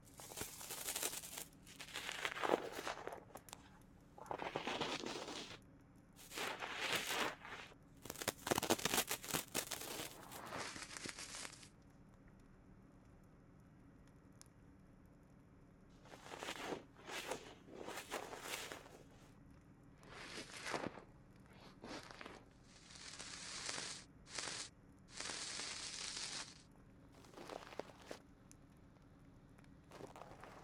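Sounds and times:
left ear cleaning with an ear pick: 0.0 - 5.6, 6.2 - 11.6, 16.1 - 19.2, 20.1 - 26.6, 27.2 - 28.2, 29.9 - 30.6.

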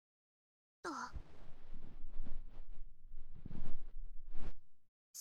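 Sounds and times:
cotton swab and carbonated ear cleaning: 1.1 - 4.8.

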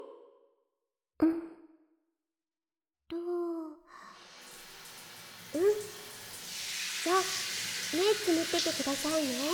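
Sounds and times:
shower water pouring over head: 4.0 - 9.5
speech: 7.2 - 9.5.

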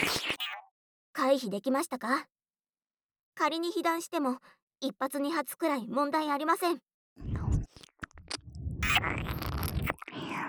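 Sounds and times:
speech: 1.2 - 2.4, 3.4 - 7.4, 9.0 - 9.5
child chewing noisily while eating: 7.3 - 10.4.

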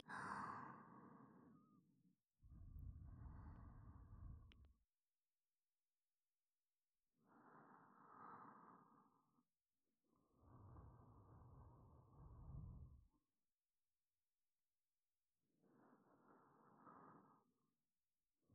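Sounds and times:
breathing in the left ear: 0.0 - 1.8, 2.8 - 4.6, 7.2 - 9.5, 10.2 - 13.1, 15.6 - 17.7.

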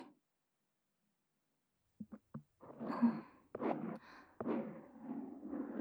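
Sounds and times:
soothing ear cleaning on the left side: 2.0 - 5.7.

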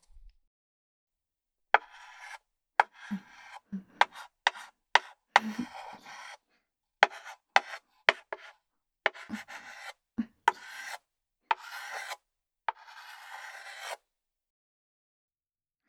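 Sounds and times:
chalk scraping across a board as a chalk artist draws lines: 1.8 - 6.4, 7.0 - 14.0.

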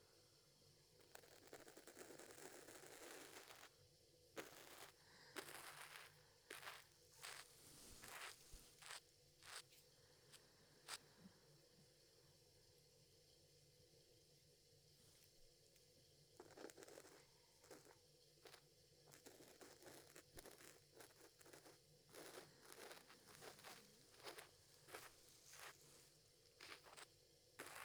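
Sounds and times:
ear cleaning on the right ear: 1.3 - 3.7, 4.4 - 9.8, 16.4 - 27.8.

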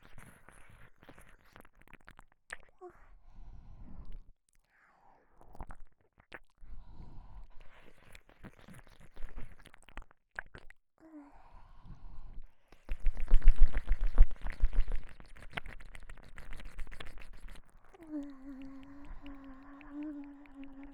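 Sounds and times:
voice leaking intensely in left ear of KU100 binaural head: 12.9 - 20.9.

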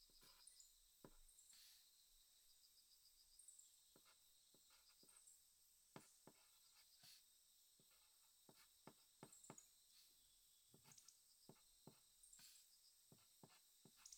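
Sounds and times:
diary writing sounds: 0.1 - 1.8, 3.9 - 5.3, 5.9 - 14.1.

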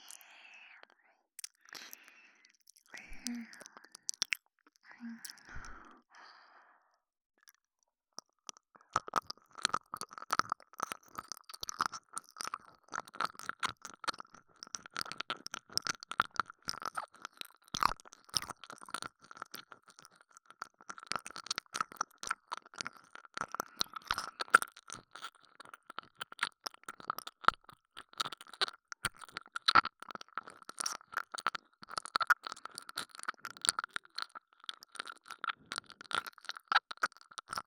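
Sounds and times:
repeating voice: 3.0 - 3.8
ear licking sounds on the left ear: 8.9 - 37.6.

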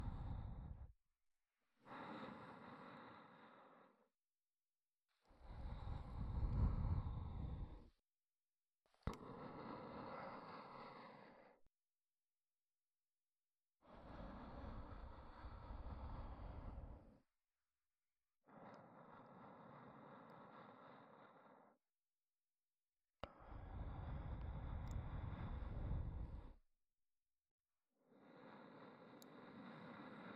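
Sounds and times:
ASMR breathy sighs: 0.0 - 0.9, 1.7 - 4.2, 5.2 - 8.0, 9.0 - 11.7, 13.8 - 17.3, 18.4 - 21.8, 23.2 - 26.6, 28.0 - 30.3.

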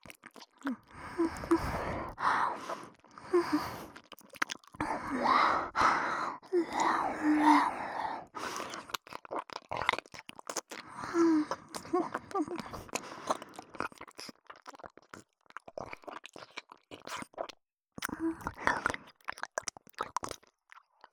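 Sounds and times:
ASMR ear licking voice: 0.3 - 14.8, 18.0 - 20.3.

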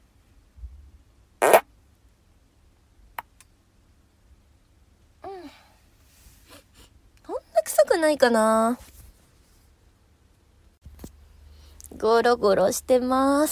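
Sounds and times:
fart: 1.4 - 1.7
speech: 8.0 - 8.9, 12.0 - 13.5.

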